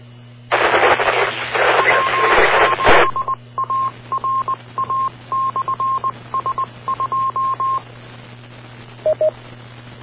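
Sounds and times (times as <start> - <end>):
low constant hum: 0.0 - 10.0
choppy mid-pitched radio tone: 0.5 - 7.8
weak rough incoming radio transmission static: 0.5 - 10.0.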